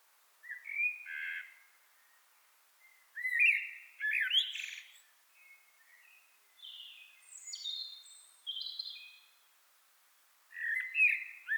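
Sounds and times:
common blackbird Turdus merula singing fluted warbles and squeaky notes: 3.2s - 9.3s, 10.6s - 11.5s.

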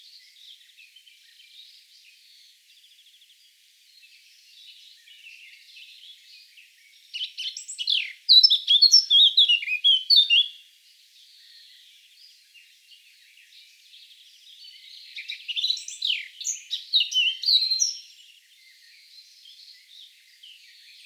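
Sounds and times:
Eurasian blackcap singing: 7.1s - 10.6s, 14.5s - 18.3s.

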